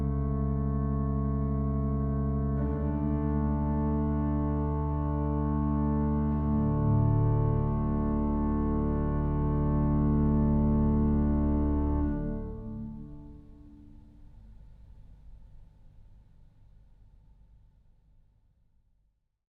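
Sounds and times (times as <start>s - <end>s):
organist playing an Orthodox acclamation canon: 0.0s - 13.6s.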